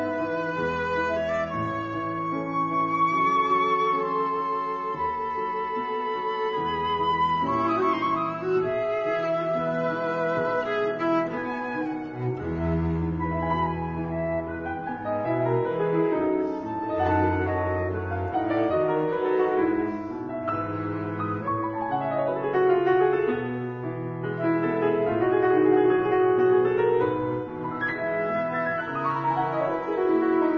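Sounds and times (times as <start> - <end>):
flute: 0.0 - 21.5, 27.6 - 30.5
cello: 0.0 - 30.5
piano: 0.0 - 30.5.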